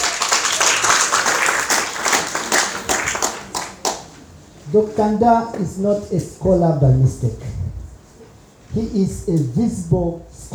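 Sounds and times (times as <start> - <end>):
audience clapping: 0.0 - 4.2
speech: 4.7 - 7.7, 8.8 - 10.5.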